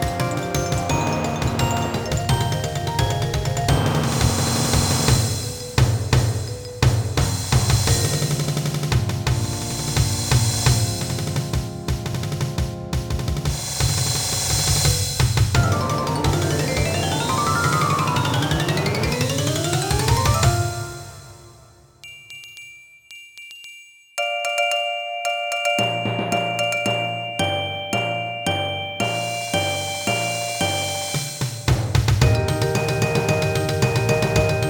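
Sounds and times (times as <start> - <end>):
percussion: 0.0 - 34.6.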